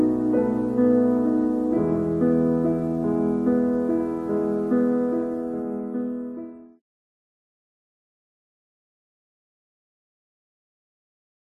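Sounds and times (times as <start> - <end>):
sonata: 0.0 - 6.8.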